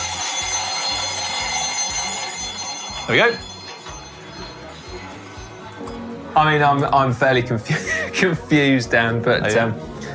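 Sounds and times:
bell ringing: 0:00.0 - 0:06.1
speech: 0:03.1 - 0:03.5, 0:06.4 - 0:09.9.

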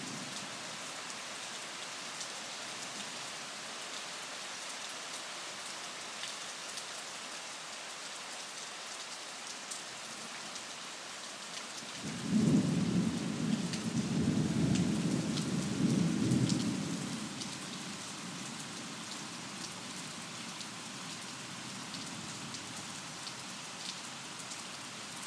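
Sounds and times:
thunderstorm at midnight: 0:12.0 - 0:17.3.

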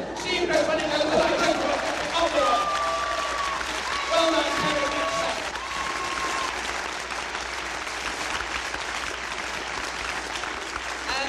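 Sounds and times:
crowd applauding: 0:00.1 - 0:11.2
whistles and cheers: 0:02.2 - 0:06.8.

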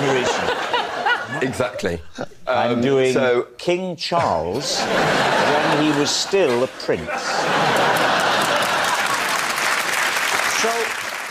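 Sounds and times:
laughter: 0:00.0 - 0:02.6, 0:04.2 - 0:09.9
speech: 0:01.4 - 0:08.0
audience clapping: 0:05.3 - 0:06.7, 0:07.4 - 0:11.3.

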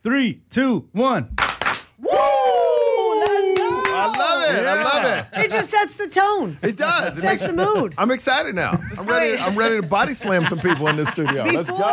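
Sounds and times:
speech: 0:00.0 - 0:01.4, 0:04.0 - 0:11.9
two hand claps: 0:01.4 - 0:01.9, 0:03.2 - 0:04.4
person shouting woo: 0:02.0 - 0:04.1
laughter: 0:03.5 - 0:05.9, 0:06.6 - 0:11.9.

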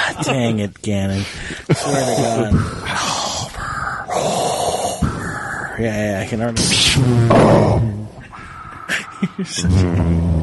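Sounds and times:
speech: 0:00.2 - 0:03.1, 0:05.8 - 0:08.2, 0:09.2 - 0:10.4
heavy breathing into a microphone: 0:01.1 - 0:06.3, 0:08.2 - 0:09.4.

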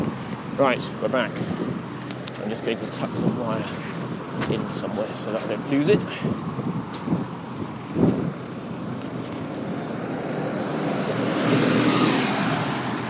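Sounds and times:
bus driving past on Lambeth Bridge: 0:00.0 - 0:13.0
speech: 0:00.6 - 0:01.7, 0:02.5 - 0:07.2
faint high whine: 0:10.5 - 0:13.0.

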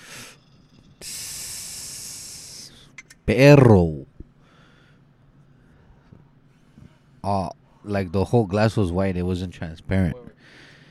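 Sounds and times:
person inhaling a hit of smoke: 0:00.0 - 0:03.0
speech: 0:03.3 - 0:04.0, 0:07.3 - 0:10.3.

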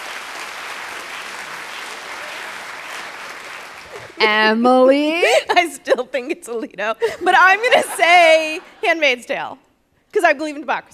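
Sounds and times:
audience clapping: 0:00.0 - 0:04.4
laughter: 0:03.8 - 0:09.2
speech: 0:04.2 - 0:10.9.

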